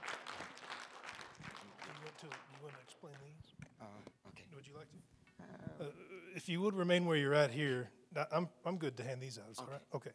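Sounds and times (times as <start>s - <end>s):
audience clapping: 0.0s - 3.4s
speech: 2.2s - 10.1s.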